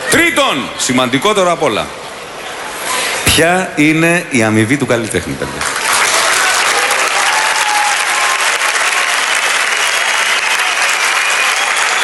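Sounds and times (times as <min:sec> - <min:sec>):
speech: 0:00.1 - 0:02.1, 0:03.4 - 0:05.8
audience applause: 0:05.6 - 0:12.0.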